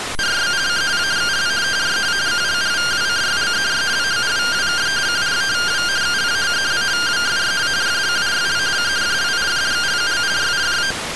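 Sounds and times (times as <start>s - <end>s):
received RTTY radioteletype signal: 0.2s - 11.0s.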